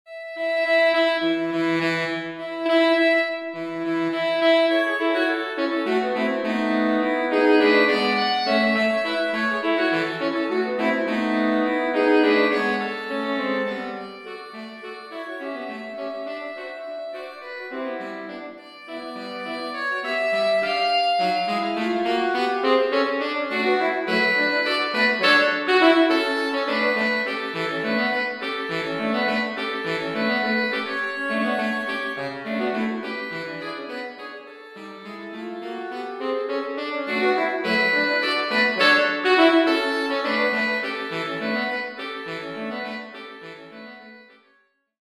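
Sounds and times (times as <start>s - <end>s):
saxophone trio playing: 0.1s - 44.4s.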